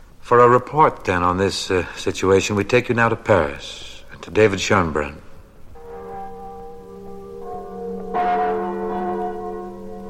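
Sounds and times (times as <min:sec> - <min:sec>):
speech: 0:00.3 - 0:05.2
large church bells tolling: 0:05.8 - 0:10.0.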